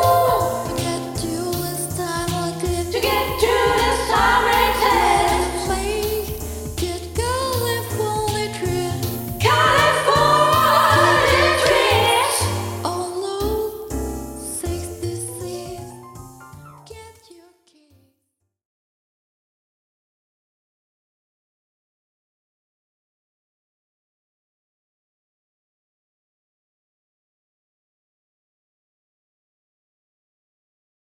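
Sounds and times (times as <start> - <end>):
kids jazz piano: 0.0 - 17.2.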